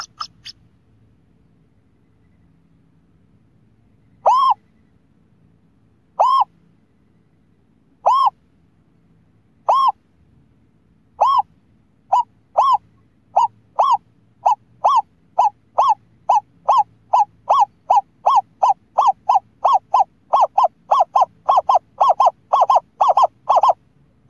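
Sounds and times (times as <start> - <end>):
scops owl hooting: 0.0 - 0.6, 4.1 - 4.8, 6.2 - 6.6, 8.0 - 8.4, 9.6 - 10.0, 11.2 - 11.5, 12.1 - 24.2.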